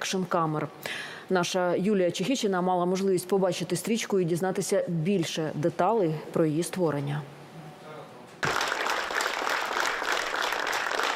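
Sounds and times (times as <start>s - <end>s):
speech: 0.0s - 7.4s
audience applause after a documentary screening at Zhovten cinema in Kyiv: 8.4s - 11.1s.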